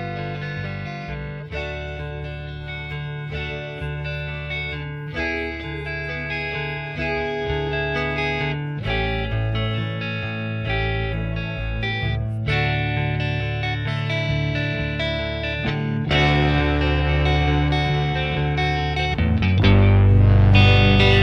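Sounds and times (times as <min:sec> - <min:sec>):
isolated clean guitar: 0:00.0 - 0:21.2.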